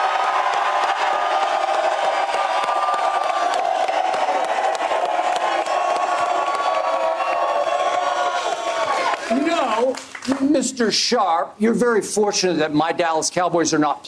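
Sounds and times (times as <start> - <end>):
live audience cheering and shouting outside State Farm Stadium at Super Bowl 57: 0.0 - 10.0
speech: 10.8 - 14.0.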